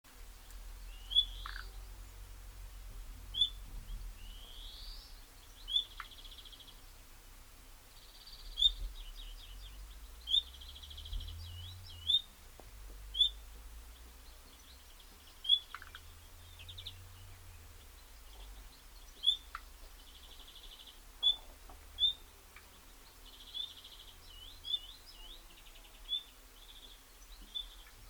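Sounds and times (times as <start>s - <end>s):
common nightingale song: 0.1s - 28.0s
faint low rumble: 0.1s - 28.0s.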